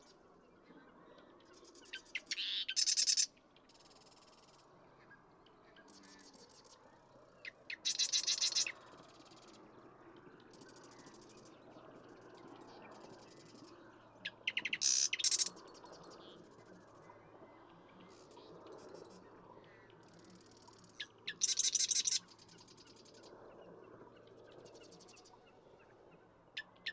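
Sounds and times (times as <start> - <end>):
Marsh Wren singing: 0.0 - 26.9.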